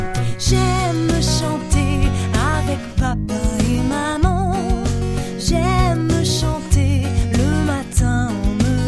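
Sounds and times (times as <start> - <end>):
person singing: 0.1 - 8.8.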